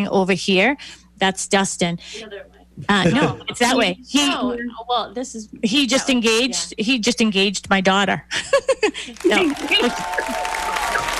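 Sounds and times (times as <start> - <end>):
speech: 0.0 - 10.5
laughter: 3.0 - 3.6, 8.3 - 11.1
round of applause: 9.2 - 11.1.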